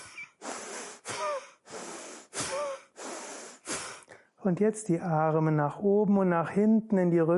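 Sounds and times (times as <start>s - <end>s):
forceful yoga power-breath breathing: 0.0s - 4.4s
speech: 4.4s - 7.3s.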